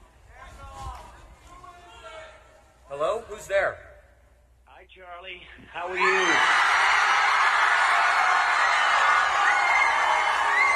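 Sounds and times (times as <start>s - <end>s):
speech: 3.0s - 3.9s, 5.0s - 6.8s
big crowd cheering: 5.8s - 10.7s.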